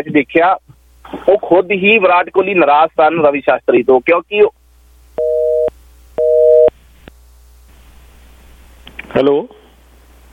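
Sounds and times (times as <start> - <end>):
speech: 0.0 - 4.6, 9.2 - 9.6
telephone busy tone after a call-in caller's line disconnected: 5.2 - 6.7.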